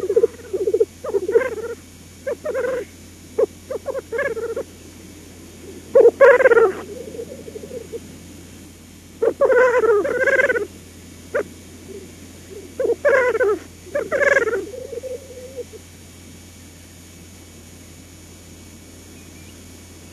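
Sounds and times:
black grouse bubbling coo: 0.0s - 4.8s, 5.4s - 8.2s, 9.2s - 15.9s.

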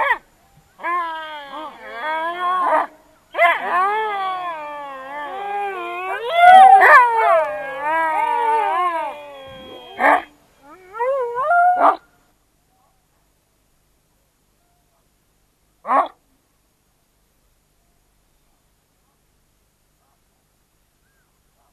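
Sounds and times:
Ethiopian wolf yelping, whining and howling: 0.8s - 12.0s.

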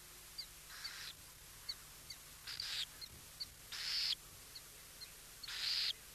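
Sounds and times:
burrowing owl giving harsh hissing rasps: 0.4s - 1.2s, 2.4s - 3.0s, 3.7s - 4.2s, 5.4s - 6.0s.

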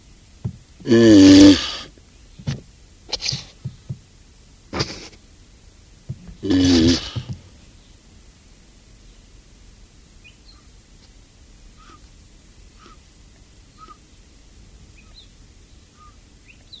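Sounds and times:
Galapagos tortoise groaning call: 0.8s - 3.9s, 6.1s - 7.5s.

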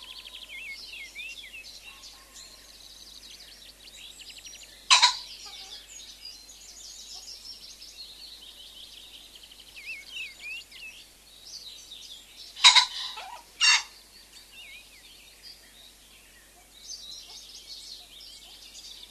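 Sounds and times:
songbirds twittering: 0.0s - 19.0s
common pheasant crowing: 4.8s - 5.9s, 12.6s - 14.0s.

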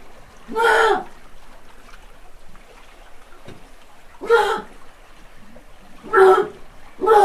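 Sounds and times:
common seal: 0.5s - 1.1s, 4.2s - 4.8s, 6.0s - 7.2s.

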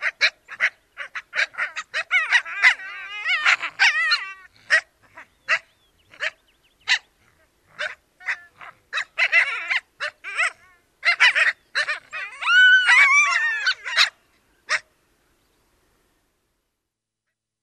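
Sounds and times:
Ethiopian wolf chorus howling: 0.6s - 4.8s, 7.8s - 14.2s.

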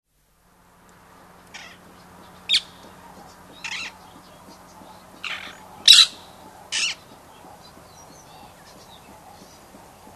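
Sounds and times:
Rose-ringed parakeet screeching: 1.5s - 1.8s, 3.6s - 4.0s, 5.2s - 7.0s.

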